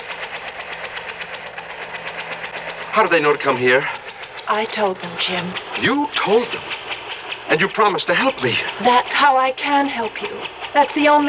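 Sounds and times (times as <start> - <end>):
helicopter approaching to land: 0.0 - 11.2
speech: 3.0 - 6.8, 7.5 - 11.2.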